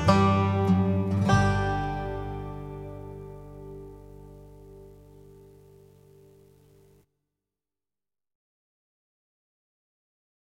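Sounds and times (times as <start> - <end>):
banjo: 0.0 - 5.0.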